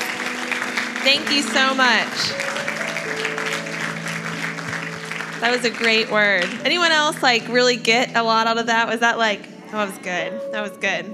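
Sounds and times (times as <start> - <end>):
crowd applauding: 0.0 - 8.0
speech: 1.0 - 2.5, 5.4 - 11.1.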